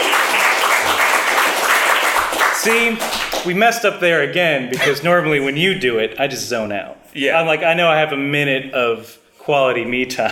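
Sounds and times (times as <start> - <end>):
clapping: 0.0 - 3.5
speech: 2.6 - 10.3.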